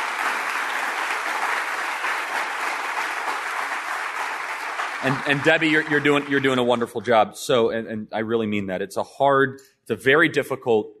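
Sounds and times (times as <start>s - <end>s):
audience applause: 0.0s - 7.1s
speech: 5.0s - 10.9s.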